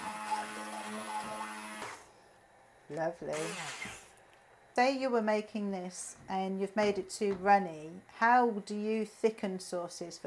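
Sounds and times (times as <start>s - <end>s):
stick blender whirring in a pan: 0.0s - 2.1s, 3.3s - 4.2s
speech: 2.9s - 4.0s, 4.8s - 10.2s.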